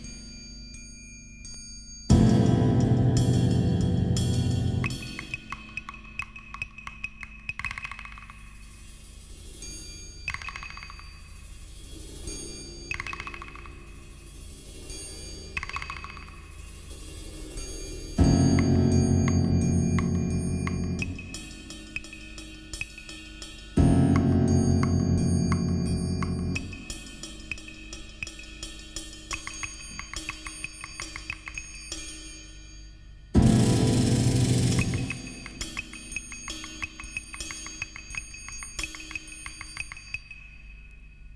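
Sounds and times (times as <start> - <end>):
musical sound effect: 2.1 - 5.5, 18.2 - 21.8, 23.8 - 27.2, 33.4 - 36.7.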